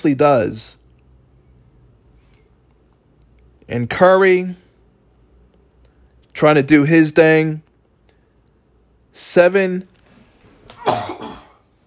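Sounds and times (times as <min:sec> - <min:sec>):
speech: 0:00.0 - 0:00.8, 0:03.7 - 0:04.6, 0:06.4 - 0:07.7, 0:09.2 - 0:09.9
sneeze: 0:10.7 - 0:11.6.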